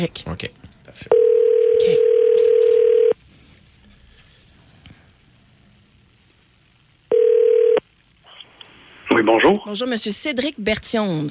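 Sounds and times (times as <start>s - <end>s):
speech: 0.0s - 2.1s, 9.2s - 11.2s
faint hum: 0.0s - 11.2s
telephone ringback tone on an outgoing call: 1.1s - 3.2s, 7.1s - 7.8s.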